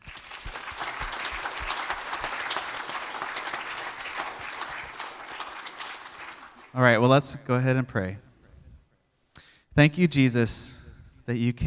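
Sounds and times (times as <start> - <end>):
crowd clapping: 0.0 - 7.1
speech: 6.8 - 8.3, 9.8 - 11.6.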